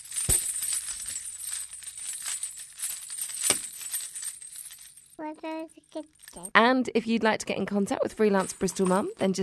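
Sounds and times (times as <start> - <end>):
bells being shaken: 0.0 - 5.2, 6.0 - 6.5, 8.4 - 9.3
speech: 5.2 - 9.4.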